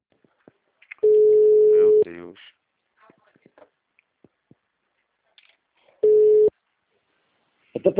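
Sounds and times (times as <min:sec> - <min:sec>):
telephone beep after a dropped call: 0:01.0 - 0:02.0, 0:06.0 - 0:06.5
speech: 0:02.3 - 0:02.6.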